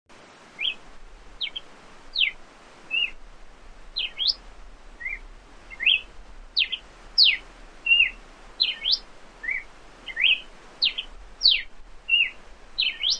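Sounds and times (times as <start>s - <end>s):
red-cowled cardinal whistling song: 0.6s - 0.8s, 2.2s - 3.2s, 4.0s - 4.4s, 5.0s - 13.1s.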